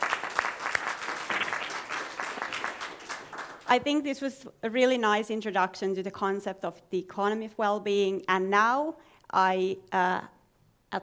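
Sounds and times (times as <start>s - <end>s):
audience applause: 0.0s - 3.7s
speech: 3.7s - 11.0s.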